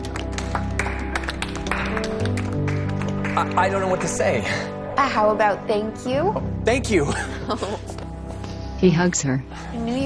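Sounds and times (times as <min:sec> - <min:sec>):
hand claps: 0:00.0 - 0:04.3
steady music: 0:00.0 - 0:10.0
speech: 0:03.4 - 0:07.9, 0:08.8 - 0:10.0.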